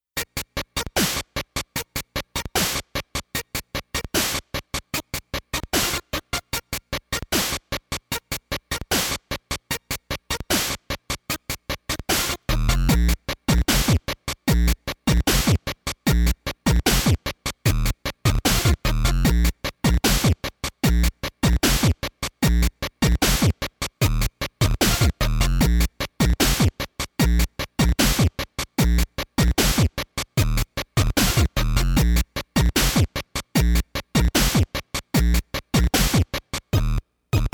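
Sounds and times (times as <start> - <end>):
instrumental beat: 0.4 - 37.5.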